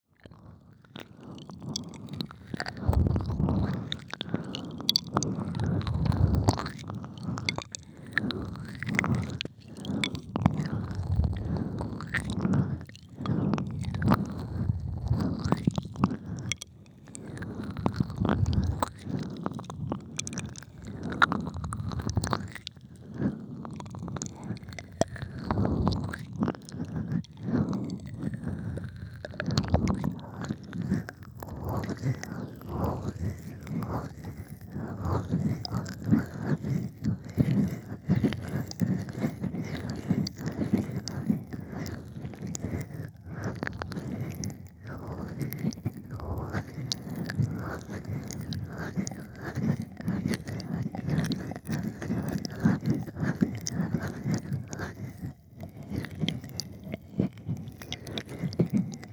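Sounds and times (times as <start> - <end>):
ASMR ear licking sounds: 1.4 - 59.1.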